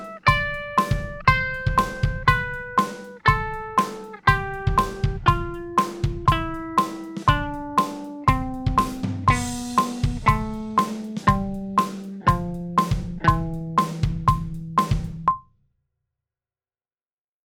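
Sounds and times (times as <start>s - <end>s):
music in A Phrygian mode at 120 bpm: 0.0s - 15.3s.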